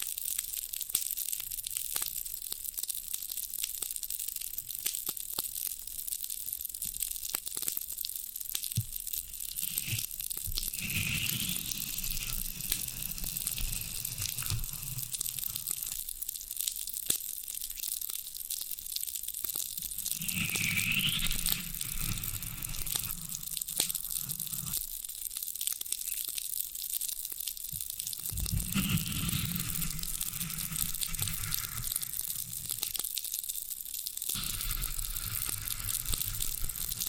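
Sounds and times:
floral foam being handled, crackling and crumbling: 8.0s - 26.3s, 27.3s - 37.0s.

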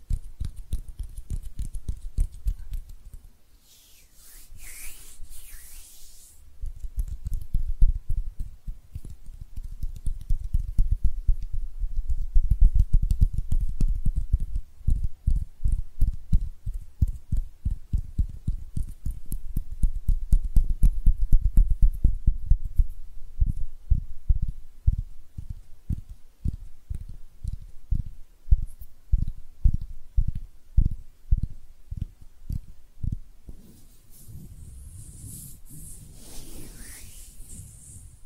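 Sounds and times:
soft low hand taps or pats: 0.0s - 23.6s, 24.4s - 38.2s
bright hand rubbing swishes: 3.6s - 6.5s, 33.5s - 38.2s.

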